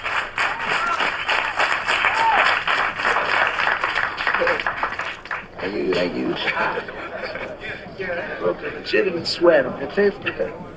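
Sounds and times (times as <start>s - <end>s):
audience applause: 0.0s - 5.6s
speech: 5.6s - 7.0s, 8.0s - 10.7s
laughter: 5.9s - 8.9s.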